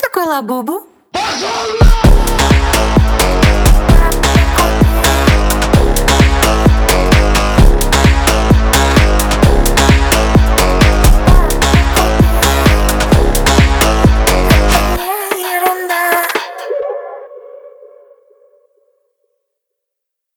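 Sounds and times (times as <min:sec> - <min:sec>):
phonk version: 0:01.1 - 0:17.2.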